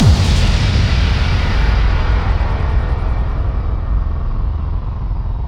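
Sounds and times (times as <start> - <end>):
bass drum FX kicks: 0.0 - 5.3.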